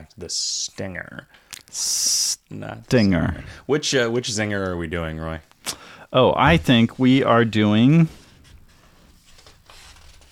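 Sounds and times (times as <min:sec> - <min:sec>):
speech: 0:00.2 - 0:08.2
flipping through papers: 0:08.8 - 0:10.2.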